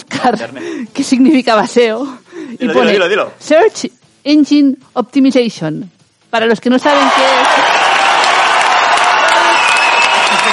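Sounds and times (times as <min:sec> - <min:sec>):
speech: 0:00.2 - 0:07.6
crowd applause sound effect: 0:06.8 - 0:10.5.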